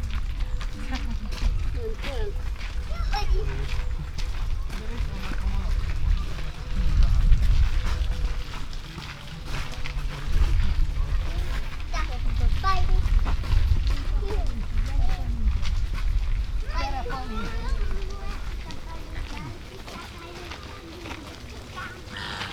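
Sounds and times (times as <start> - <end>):
wind: 0.0 - 22.5
American flamingo and Chilean flamingo calling in a zoo: 22.0 - 22.5.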